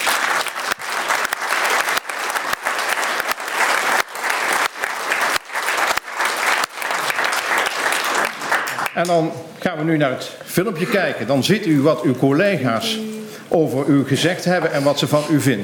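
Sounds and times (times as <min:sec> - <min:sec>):
audience applause: 0:00.0 - 0:09.3
speech: 0:09.0 - 0:15.6.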